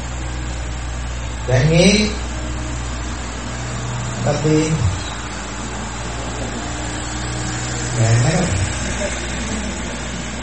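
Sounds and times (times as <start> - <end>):
vehicle passing by: 0.0 - 10.4
speech: 1.5 - 2.2, 4.2 - 4.9, 8.0 - 9.2.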